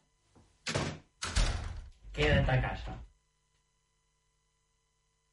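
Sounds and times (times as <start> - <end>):
door being pushed shut with a thud: 0.7 - 2.6
speech: 2.2 - 3.1.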